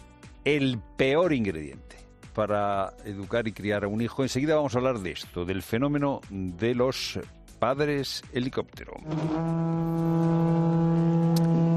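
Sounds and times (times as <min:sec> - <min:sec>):
speech: 0:00.4 - 0:10.3
trumpet call: 0:09.0 - 0:11.7.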